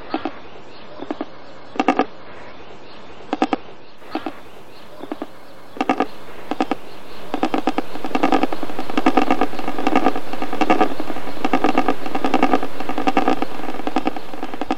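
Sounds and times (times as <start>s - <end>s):
steady rushing noise: 0.0s - 14.7s
secretary bird croaking harshly: 4.0s - 14.7s.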